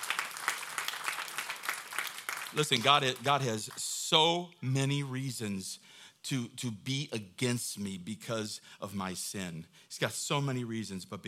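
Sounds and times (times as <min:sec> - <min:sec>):
audience clapping: 0:00.0 - 0:03.8
speech: 0:02.5 - 0:11.2.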